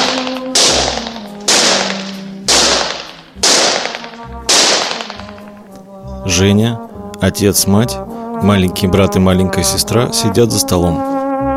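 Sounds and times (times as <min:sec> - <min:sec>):
gunshots at German-soldier-shaped targets in a shooting gallery: 0:00.0 - 0:05.7
speech: 0:06.3 - 0:11.2.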